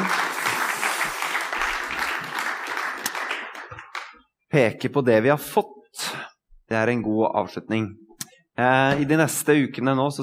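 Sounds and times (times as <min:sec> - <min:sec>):
crowd applause: 0:00.0 - 0:04.2
speech: 0:04.5 - 0:08.0, 0:08.6 - 0:10.2.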